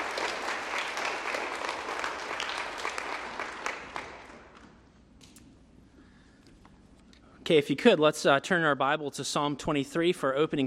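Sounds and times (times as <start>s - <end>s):
crowd applause: 0.0s - 4.6s
speech: 7.5s - 10.6s.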